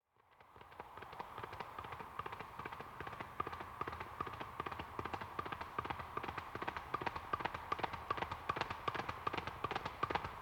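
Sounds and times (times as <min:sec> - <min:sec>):
horse galloping past with hooves clattering on asphalt: 0:00.4 - 0:10.4.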